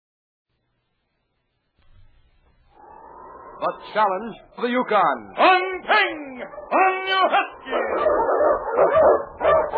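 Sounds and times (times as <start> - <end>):
speech: 3.6 - 9.3
husky sled dogs, Eskimo lead dogs, barking and yipping on a snowy trail: 6.1 - 9.7.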